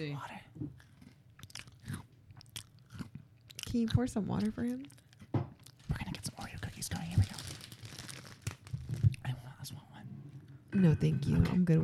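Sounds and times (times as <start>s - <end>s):
speech: 0.0s - 0.4s, 3.7s - 5.0s, 10.8s - 11.8s
chewing crunchy Oreo cookies: 0.7s - 9.3s.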